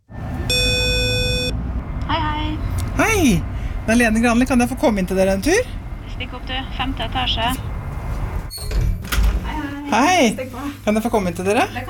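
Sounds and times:
street traffic rumble: 0:00.0 - 0:11.8
electronic doorbell buzz: 0:00.5 - 0:01.5
speech: 0:03.0 - 0:07.6, 0:09.9 - 0:11.8.

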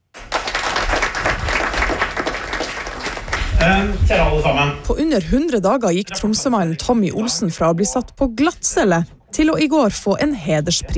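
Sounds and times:
large audience applauding: 0:00.0 - 0:04.0
speech: 0:03.6 - 0:10.9.

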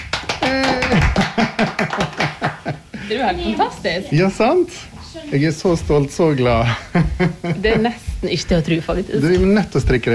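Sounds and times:
brisk handclaps celebrating a finished knitted sweater: 0:00.0 - 0:02.7
laughter: 0:00.5 - 0:03.1, 0:06.6 - 0:08.1
speech: 0:00.5 - 0:10.1.

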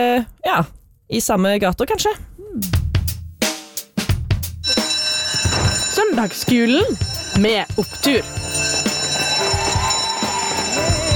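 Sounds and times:
speech: 0:00.0 - 0:02.8, 0:06.0 - 0:08.4
school bell ringing: 0:04.6 - 0:11.1.

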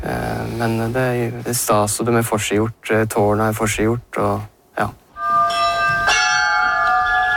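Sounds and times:
speech: 0:00.6 - 0:05.0
church bells ringing: 0:05.2 - 0:07.3.

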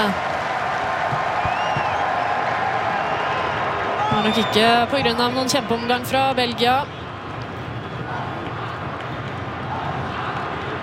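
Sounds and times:
speech: 0:00.0 - 0:00.3, 0:04.2 - 0:07.0
rhythmic stomping and clapping from stadium stands: 0:00.3 - 0:03.1, 0:07.3 - 0:10.8.

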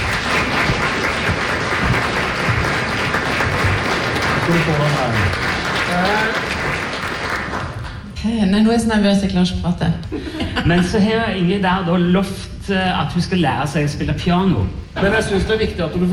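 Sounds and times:
audience applause: 0:00.0 - 0:08.0
speech: 0:04.5 - 0:06.5, 0:08.2 - 0:16.1.

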